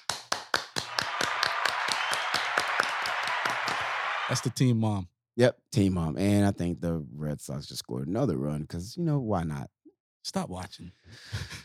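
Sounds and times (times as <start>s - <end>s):
round of applause hand clapping: 0.0s - 4.4s
speech: 4.3s - 11.6s.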